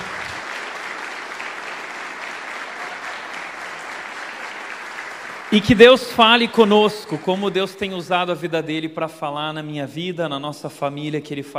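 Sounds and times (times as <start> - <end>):
audience applause welcoming a guest: 0.0 - 8.2
speech: 5.6 - 11.5.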